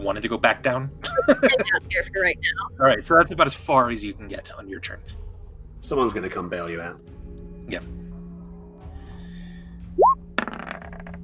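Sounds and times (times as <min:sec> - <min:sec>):
speech: 0:00.0 - 0:05.2, 0:05.8 - 0:07.1, 0:07.7 - 0:08.0
laughter: 0:01.0 - 0:02.0
dice being rolled: 0:10.4 - 0:11.2.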